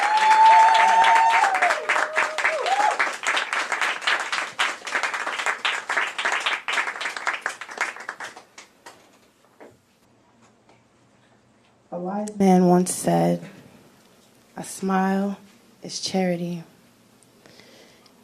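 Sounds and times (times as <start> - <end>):
person whooping: 0.0 - 3.1
audience applause welcoming a speaker onto the stage: 0.0 - 8.7
speech: 12.8 - 13.5, 14.6 - 16.7.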